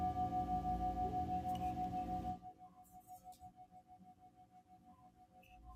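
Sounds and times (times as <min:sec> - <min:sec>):
singing bowl ringing in a live sound healing session from Mexico: 0:00.0 - 0:02.6.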